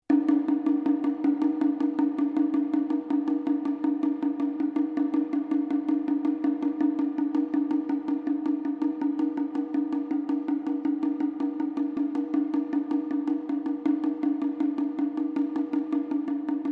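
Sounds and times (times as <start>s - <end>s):
small Japanese shime taiko drum sequence in F: 0.1s - 16.7s.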